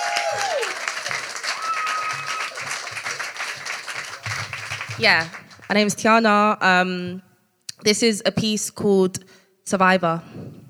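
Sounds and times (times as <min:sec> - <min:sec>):
theatre audience applause welcoming a performer to the stage: 0:00.0 - 0:05.7
theatre crowd noise: 0:00.0 - 0:05.8
speech: 0:05.0 - 0:10.4.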